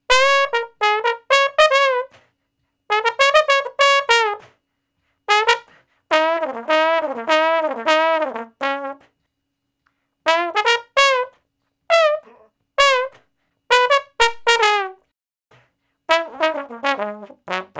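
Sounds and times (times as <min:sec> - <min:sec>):
trombone with straight mute playing D flat: 0:00.1 - 0:02.1, 0:02.9 - 0:04.4, 0:05.3 - 0:09.0, 0:10.3 - 0:11.3, 0:11.9 - 0:15.0, 0:16.1 - 0:17.7.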